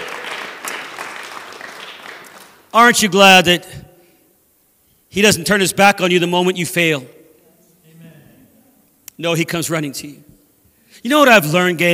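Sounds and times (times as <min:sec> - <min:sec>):
audience clapping hands: 0:00.0 - 0:02.7
speech: 0:02.8 - 0:03.8, 0:05.2 - 0:07.2, 0:09.2 - 0:10.4, 0:11.0 - 0:11.9.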